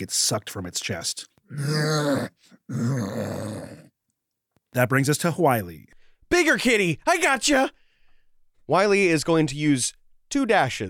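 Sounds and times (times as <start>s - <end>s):
speech: 0.0s - 3.8s, 4.7s - 7.8s, 8.7s - 10.8s
voice imitating a muffled dragon moaning: 1.5s - 4.0s.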